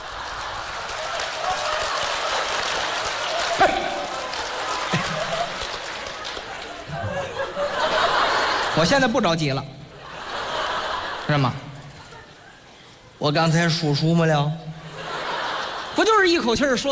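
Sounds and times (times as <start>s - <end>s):
crowd clapping: 0.0s - 7.4s
laughter: 0.0s - 12.9s, 14.7s - 16.5s
speech: 8.8s - 9.7s, 11.3s - 11.6s, 13.2s - 14.7s, 16.1s - 16.8s.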